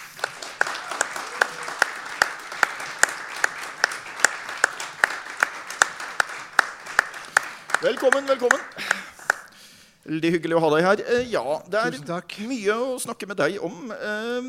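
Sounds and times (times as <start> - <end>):
audience applause: 0.0 - 9.5
sharp evenly spaced loud claps: 0.0 - 9.6
speech: 7.8 - 9.0, 10.1 - 14.4.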